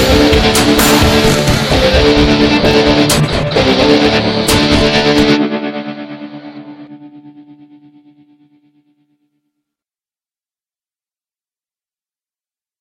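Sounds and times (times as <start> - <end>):
combat music: 0.0 - 7.0.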